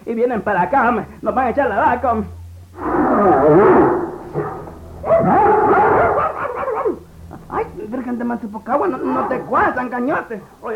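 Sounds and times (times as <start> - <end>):
speech: 0.1 - 5.4, 7.8 - 10.7
Doberman and other large dogs barking: 2.8 - 7.3, 8.9 - 10.6.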